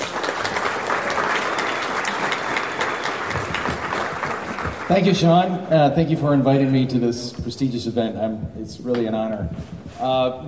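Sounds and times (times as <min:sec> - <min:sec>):
audience at a lecture event applauding to welcome a speaker: 0:00.0 - 0:05.6
speech: 0:04.9 - 0:10.4.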